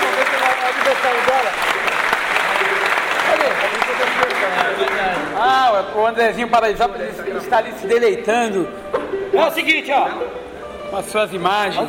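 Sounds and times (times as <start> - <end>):
applause: 0.0 - 5.4
speech: 5.4 - 11.8.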